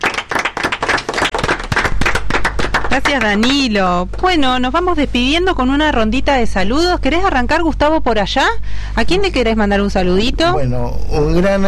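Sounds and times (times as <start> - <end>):
group clapping after a song: 0.0 - 4.3
speech: 3.0 - 11.6.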